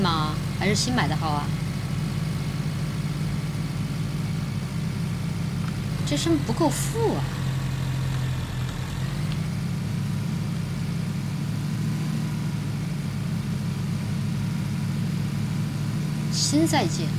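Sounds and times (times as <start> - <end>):
speech: 0.0 - 1.6, 6.1 - 7.4, 16.5 - 17.1
motorcycle engine in the video game PUBG: 0.0 - 17.1.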